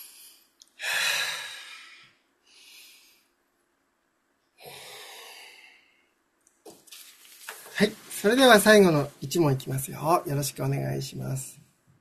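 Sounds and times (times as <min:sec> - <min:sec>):
slow deep breathing before the final quiz question: 0:00.0 - 0:03.4, 0:04.6 - 0:06.2
speech: 0:07.8 - 0:11.6.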